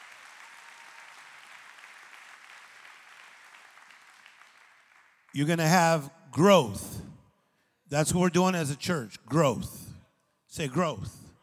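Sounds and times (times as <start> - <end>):
audience clapping: 0.0 - 6.1
speech: 5.4 - 7.0, 7.9 - 9.8, 10.5 - 11.2.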